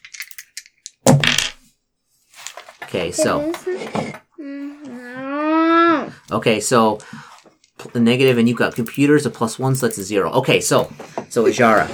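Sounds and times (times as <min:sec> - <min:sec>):
dice rolling: 0:00.0 - 0:01.6, 0:07.2 - 0:11.0
speech: 0:02.8 - 0:04.5, 0:06.3 - 0:07.3, 0:07.9 - 0:11.9.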